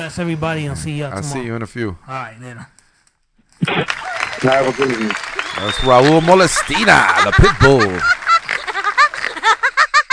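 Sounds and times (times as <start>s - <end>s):
speech: 0.0s - 2.8s, 3.6s - 8.3s
cartoon woodpecker laugh sound effect: 6.6s - 10.1s.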